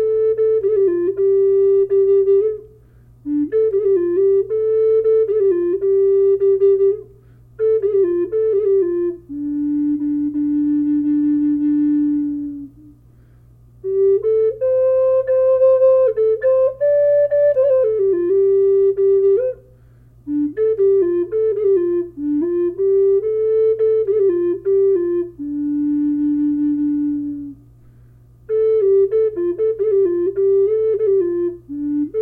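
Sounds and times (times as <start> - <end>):
low D flute playing: 0.0 - 32.2.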